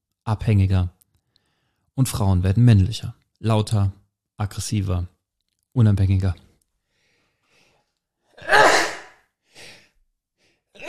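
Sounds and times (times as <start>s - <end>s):
speech: 0.3s - 1.0s, 2.0s - 5.1s, 5.8s - 6.5s
person sneezing: 8.4s - 9.8s.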